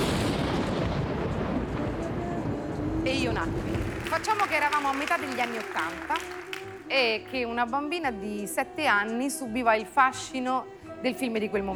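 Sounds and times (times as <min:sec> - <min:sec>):
sudden thunderclap: 0:00.0 - 0:05.7
speech: 0:03.2 - 0:11.7.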